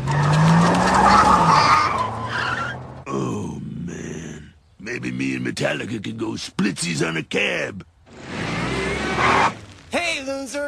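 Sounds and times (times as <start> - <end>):
school bus tires skidding: 0.0 - 3.0, 8.1 - 10.0
school bus engine roar: 0.0 - 3.1, 8.0 - 9.9
speech: 5.5 - 7.9, 9.2 - 10.6.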